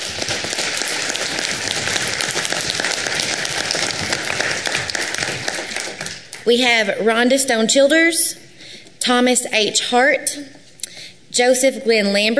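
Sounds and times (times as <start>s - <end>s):
round of applause: 0.0s - 6.4s
speech: 6.5s - 8.4s, 9.0s - 10.6s, 11.4s - 12.3s.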